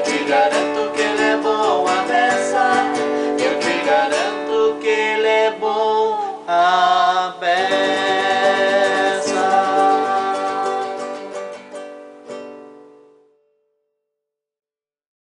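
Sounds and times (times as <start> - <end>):
vocals: 0.0 - 11.9.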